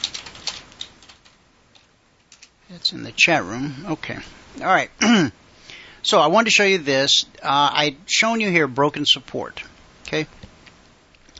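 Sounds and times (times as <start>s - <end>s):
faint keyboard typing of a message: 0.0s - 2.6s
speech: 2.7s - 5.4s, 6.0s - 10.4s.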